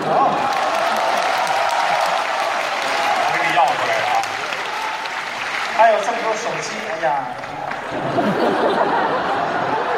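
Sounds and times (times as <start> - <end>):
laughter: 0.0 - 1.4, 7.5 - 9.9
audience applause: 0.0 - 9.9
speech: 5.8 - 8.8.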